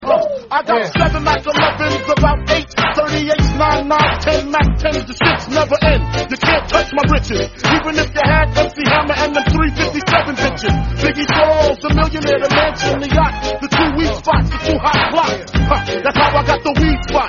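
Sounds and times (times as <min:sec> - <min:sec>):
song: 0:00.9 - 0:17.2.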